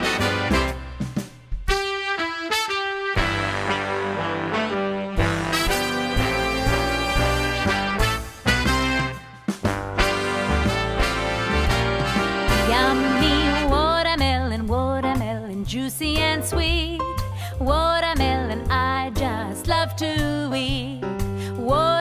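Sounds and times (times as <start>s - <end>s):
jazz music: 0.0s - 21.9s.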